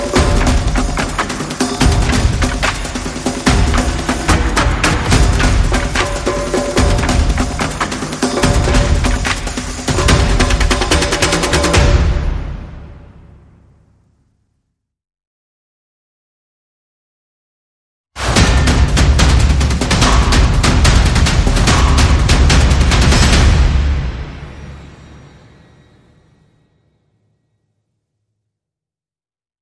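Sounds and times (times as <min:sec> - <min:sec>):
percussion: 0:00.0 - 0:13.6, 0:18.2 - 0:27.4.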